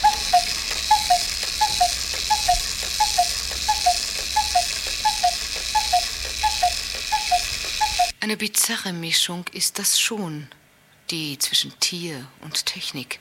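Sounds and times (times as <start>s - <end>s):
cuckoo clock calling: 0.0s - 8.2s
speech: 8.3s - 13.1s.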